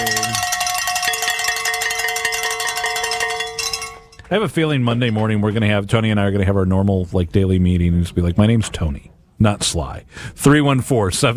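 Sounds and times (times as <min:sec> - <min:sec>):
bells ringing: 0:00.0 - 0:04.3
speech: 0:04.3 - 0:11.3.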